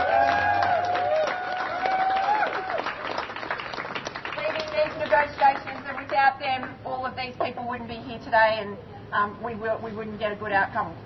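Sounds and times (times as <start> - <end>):
round of applause for delegates: 0.0 - 6.8
speech: 6.6 - 11.0.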